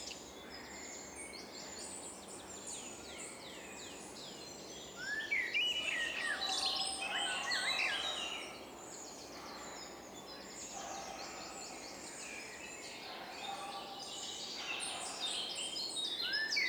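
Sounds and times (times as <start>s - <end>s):
forest ambience: 5.0s - 16.6s.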